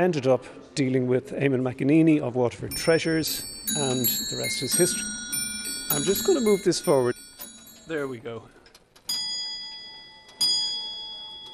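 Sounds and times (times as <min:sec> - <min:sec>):
speech: 0:00.0 - 0:05.3, 0:05.9 - 0:07.2, 0:07.9 - 0:08.6
cuckoo clock ticking and chiming: 0:02.8 - 0:08.3, 0:09.0 - 0:11.5.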